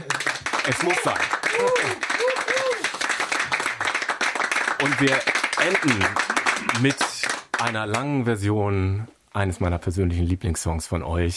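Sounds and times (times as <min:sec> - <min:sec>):
voices cheering: 0:00.0 - 0:03.0
crowd applause: 0:00.0 - 0:07.8
speech: 0:00.7 - 0:02.5, 0:04.8 - 0:11.3.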